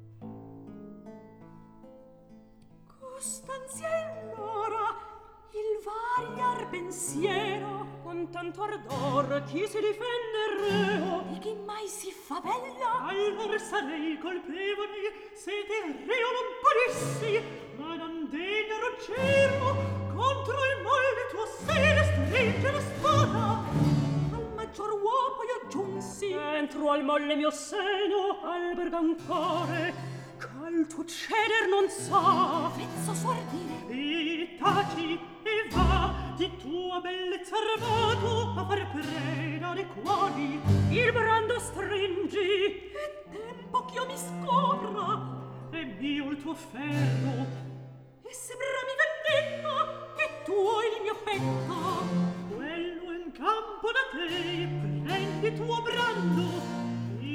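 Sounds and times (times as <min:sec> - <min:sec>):
recitative singing: 0:03.0 - 0:57.3.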